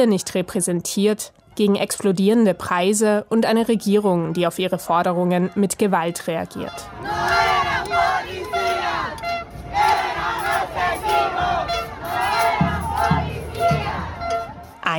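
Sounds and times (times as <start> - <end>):
speech: 0.0 - 9.2
protest crowd shouting and chanting: 4.1 - 14.9
low rumbling beat: 7.0 - 14.9.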